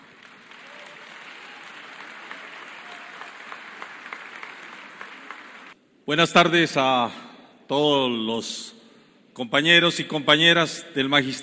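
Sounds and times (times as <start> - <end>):
audience applause: 0.0 - 5.8
speech: 6.1 - 8.8, 9.4 - 11.4.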